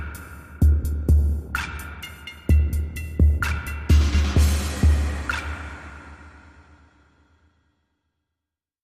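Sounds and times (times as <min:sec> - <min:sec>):
drone rhythm: 0:00.0 - 0:06.4.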